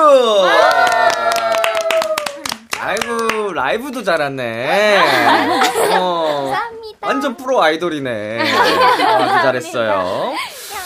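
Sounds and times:
studio audience clapping: 0.4 - 3.7
speech: 3.7 - 10.5
laughter: 4.8 - 6.6, 8.4 - 9.6.

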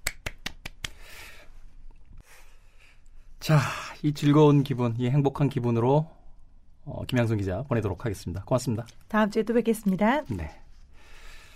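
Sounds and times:
clapping: 0.0 - 1.0
speech: 3.4 - 6.2, 6.9 - 10.6.

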